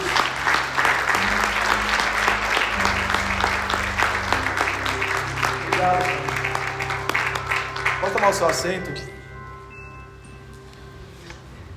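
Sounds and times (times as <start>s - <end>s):
audience applause: 0.0s - 8.9s
speech: 8.2s - 9.2s.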